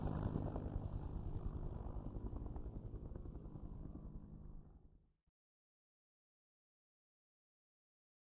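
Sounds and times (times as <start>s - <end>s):
Huey helicopter flying slowly by: 0.0s - 4.8s.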